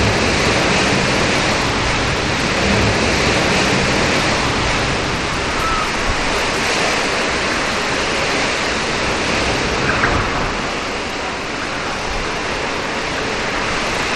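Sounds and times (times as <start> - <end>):
rain: 0.0 - 14.1
birds whistling: 5.6 - 6.0.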